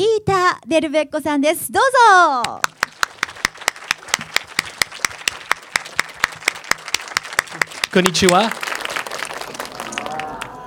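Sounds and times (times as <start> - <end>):
speech: 0.0 - 2.8, 7.9 - 8.6
audience clapping in unison for a film producer at a meet-the-filmmaker event for Frozen: 2.4 - 10.6.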